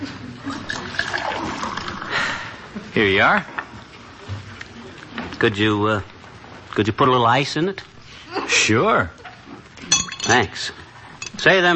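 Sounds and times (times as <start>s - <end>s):
water pouring into a glass at a drugstore soda fountain counter: 0.6s - 2.1s
speech: 3.0s - 3.6s, 5.4s - 6.1s, 6.8s - 9.2s, 10.3s - 10.8s, 11.4s - 11.7s.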